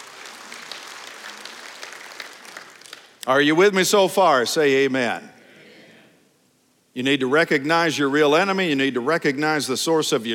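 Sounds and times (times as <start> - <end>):
audience clapping hands: 0.0 - 3.3
speech: 3.2 - 5.3, 7.0 - 10.3.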